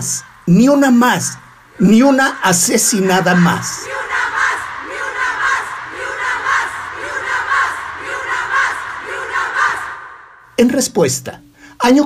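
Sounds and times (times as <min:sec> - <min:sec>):
speech: 0:00.0 - 0:04.0, 0:10.6 - 0:12.0
huge crowd of thousands shouting: 0:01.5 - 0:10.4.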